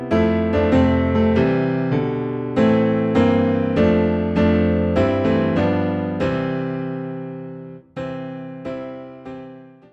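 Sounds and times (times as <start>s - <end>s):
low piano notes in C: 0.0s - 9.9s.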